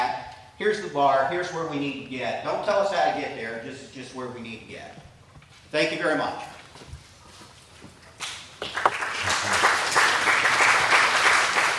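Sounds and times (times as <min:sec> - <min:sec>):
speech: 0:00.6 - 0:05.1, 0:05.7 - 0:06.9
audience applause: 0:08.6 - 0:11.7.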